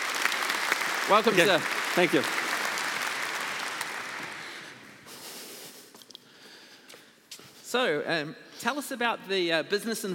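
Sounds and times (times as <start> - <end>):
audience applause for a guest coming on stage: 0.0 - 5.0
speech: 1.1 - 2.4, 7.7 - 10.1.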